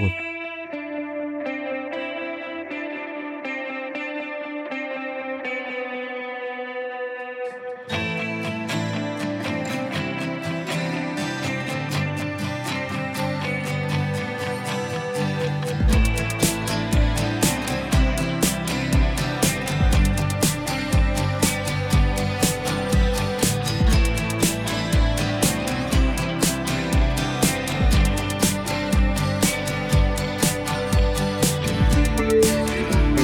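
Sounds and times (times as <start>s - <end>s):
music track played on air: 0.0s - 33.2s.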